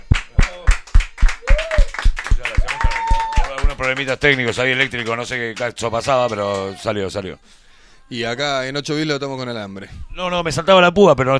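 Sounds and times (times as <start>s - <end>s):
applause: 0.0s - 6.9s
speech: 3.8s - 11.3s.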